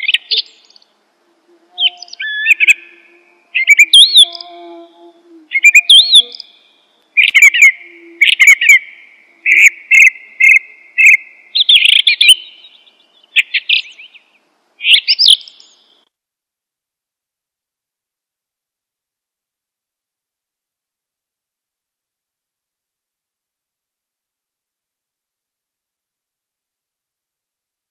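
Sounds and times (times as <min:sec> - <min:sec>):
bird singing varied chirps and whistles: 0:00.0 - 0:16.1.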